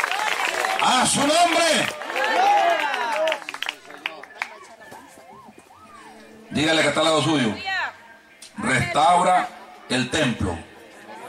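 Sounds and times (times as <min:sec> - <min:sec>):
audience applauding: 0:00.0 - 0:05.0
speech: 0:00.8 - 0:02.5, 0:06.6 - 0:07.7, 0:08.6 - 0:10.7.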